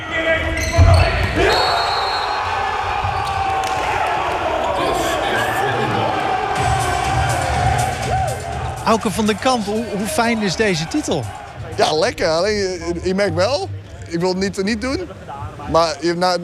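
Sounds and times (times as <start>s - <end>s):
crowd cheering and shouting in a sports hall: 0.0s - 12.0s
speech: 8.9s - 16.4s.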